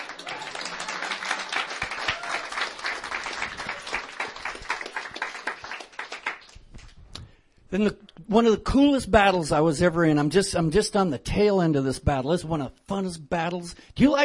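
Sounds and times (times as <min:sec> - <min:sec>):
audience clapping loudly: 0:00.0 - 0:07.0
speech: 0:07.7 - 0:14.2.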